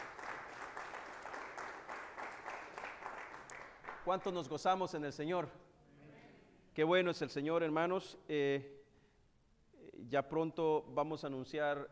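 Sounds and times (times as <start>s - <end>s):
audience applause: 0.0s - 4.1s
speech: 4.0s - 5.7s, 6.8s - 8.8s, 10.0s - 11.9s.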